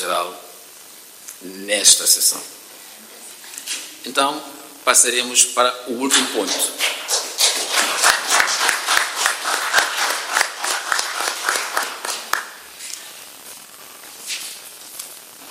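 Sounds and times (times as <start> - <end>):
speech: 0.0 - 0.5, 1.4 - 2.6, 4.0 - 7.0
audience applause: 7.1 - 12.7.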